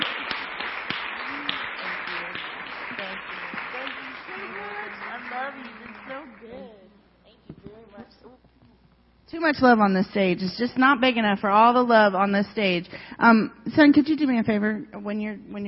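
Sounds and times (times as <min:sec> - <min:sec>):
audience applause: 0:00.0 - 0:06.6
speech: 0:09.3 - 0:15.6.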